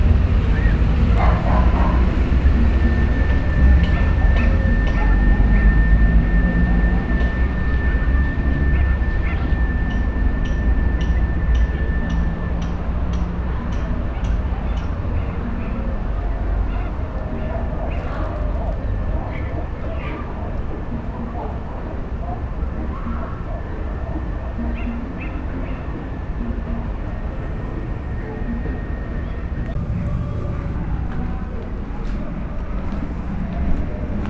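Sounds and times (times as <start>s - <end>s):
droning city noise in Brazil: 0.0s - 34.2s.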